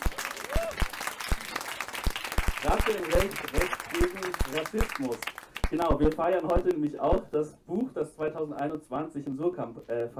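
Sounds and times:
audience applause: 0.0 - 6.3
speech: 2.6 - 10.1.

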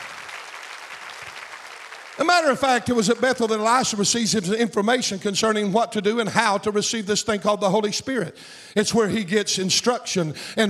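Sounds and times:
audience applause: 0.0 - 3.3
speech: 2.2 - 10.6.

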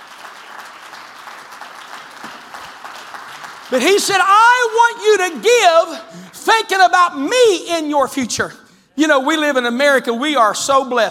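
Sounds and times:
audience clapping: 0.0 - 6.3
speech: 3.7 - 11.0.

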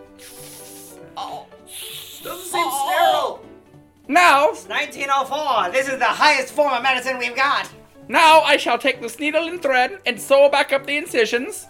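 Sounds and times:
hose spraying water: 0.0 - 1.1, 1.7 - 2.6
speech: 1.2 - 2.4, 4.1 - 11.6.

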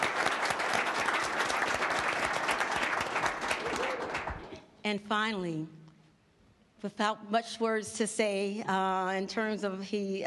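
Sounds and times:
audience applause: 0.0 - 4.6
speech: 4.9 - 5.8, 6.8 - 10.2.

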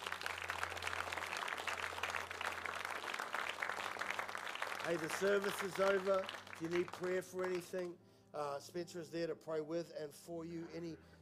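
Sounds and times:
audience clapping: 0.0 - 7.9
speech: 4.8 - 11.2.

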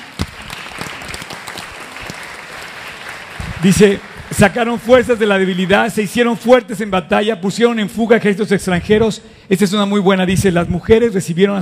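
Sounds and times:
audience applause: 0.0 - 6.3
speech: 3.6 - 11.5.

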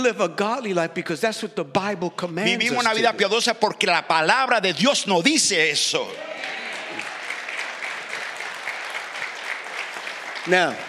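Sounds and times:
speech: 0.0 - 6.5, 10.4 - 10.8
audience clapping: 5.9 - 10.8.

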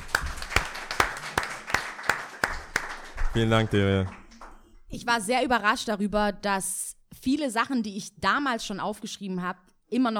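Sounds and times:
audience clapping in unison: 0.0 - 4.9
speech: 3.4 - 4.2, 4.9 - 10.1.

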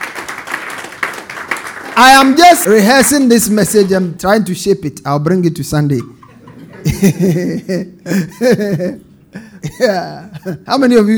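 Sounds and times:
audience clapping: 0.0 - 4.1
speech: 2.0 - 6.2, 7.0 - 11.1
laughter: 6.0 - 10.7.

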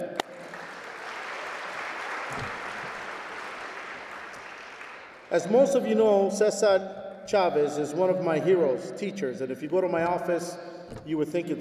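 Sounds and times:
crowd applause: 0.0 - 5.4
speech: 5.3 - 11.5.

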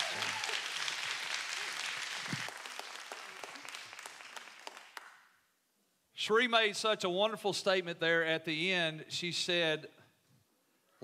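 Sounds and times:
audience applause: 0.0 - 5.2
speech: 6.3 - 10.0.

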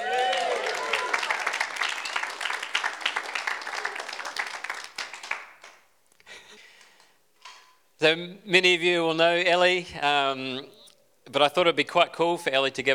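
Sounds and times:
audience clapping to welcome a speaker: 0.0 - 5.9
speech: 8.0 - 12.9.

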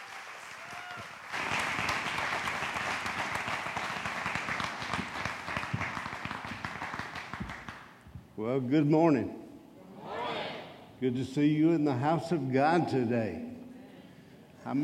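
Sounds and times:
church congregation applauding as a bishop comes to the stage: 0.0 - 8.1
speech: 8.4 - 9.4, 11.0 - 13.5, 14.6 - 14.8.

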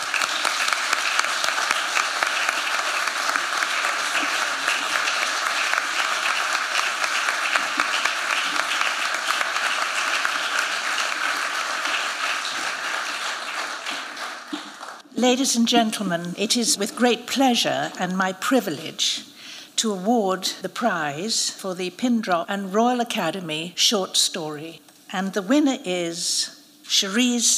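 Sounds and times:
audience applause at the Royal Academy of Arts: 0.0 - 15.0
speech: 15.2 - 27.5.

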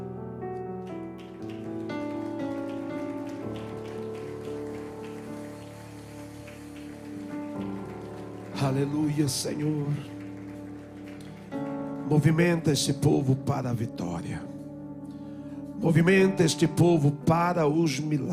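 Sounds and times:
audience applauding: 0.8 - 13.4
speech: 8.6 - 10.2, 12.1 - 14.5, 15.8 - 18.3.

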